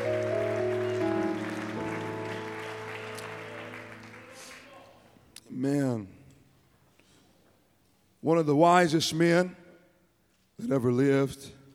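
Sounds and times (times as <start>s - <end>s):
audience clapping: 0.0s - 5.3s
speech: 5.6s - 6.2s, 8.2s - 9.6s, 10.6s - 11.6s.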